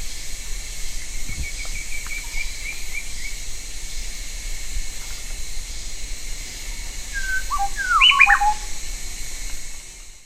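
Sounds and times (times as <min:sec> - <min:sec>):
bird whistled notes: 0:07.1 - 0:08.8.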